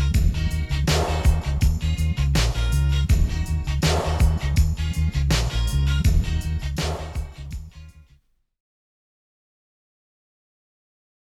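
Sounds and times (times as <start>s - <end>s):
dub music: 0.0s - 7.7s.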